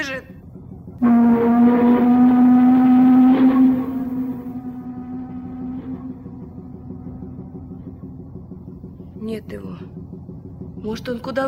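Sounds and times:
speech: 0.0 - 0.4, 1.0 - 2.1, 10.9 - 11.4
low-pitched boat horn blast as the boat prepares to moor at the Mikhailovskaya pier: 1.0 - 8.0.

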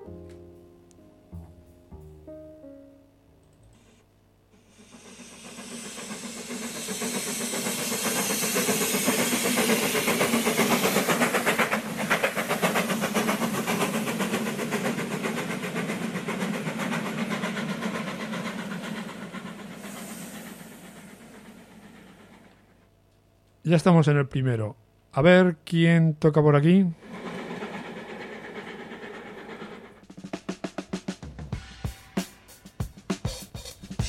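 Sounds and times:
moving train rumbling: 4.6 - 23.0, 26.9 - 31.4
speech: 23.7 - 27.0.

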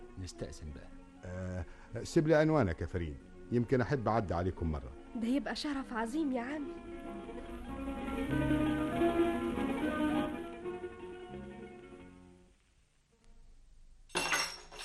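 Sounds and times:
sustained tonal music: 0.0 - 12.4
speech: 0.2 - 7.2, 8.3 - 8.8
drinking glass dropped in a kitchen and shattering: 14.1 - 14.8.

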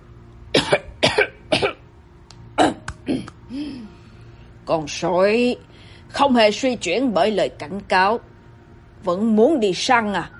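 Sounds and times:
man coughing heavily: 0.6 - 1.8
speech: 4.7 - 8.3, 9.0 - 10.3.

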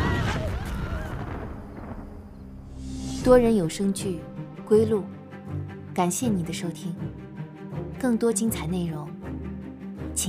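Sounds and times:
loud explosion boom: 0.0 - 3.3
speech: 3.2 - 5.2, 6.0 - 7.2, 8.0 - 9.2.

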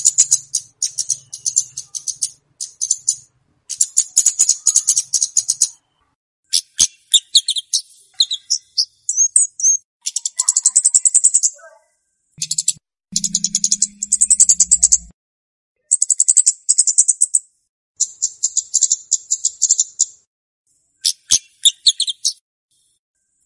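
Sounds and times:
flowerpecker song: 0.0 - 15.1, 15.8 - 20.3, 21.0 - 23.4.

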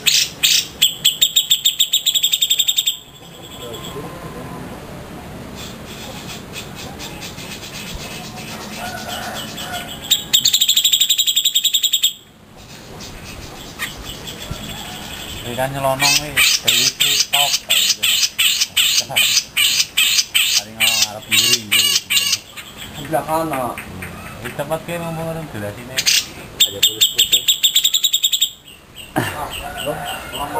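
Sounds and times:
grey-cheeked bulbul calling: 0.0 - 4.1, 5.5 - 24.8, 25.8 - 30.5
speech: 15.6 - 17.6, 23.1 - 26.1, 29.2 - 30.5.

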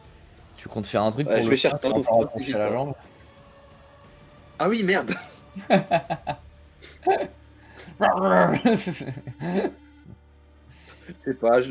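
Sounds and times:
speech: 0.6 - 3.1, 4.6 - 7.4, 8.0 - 9.8, 11.1 - 11.6
human voice mimicking a struggling dog barking and growling: 1.3 - 2.6, 4.9 - 5.2, 7.8 - 8.6
laughter: 1.3 - 2.7, 4.8 - 9.7.

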